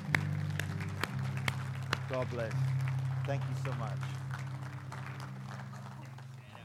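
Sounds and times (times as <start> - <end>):
applause: 0.0 - 6.6
speech: 2.1 - 4.2.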